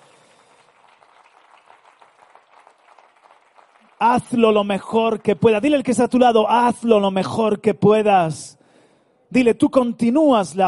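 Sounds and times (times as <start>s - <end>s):
audience applause: 0.0s - 5.5s
speech: 4.0s - 8.6s, 9.3s - 10.6s.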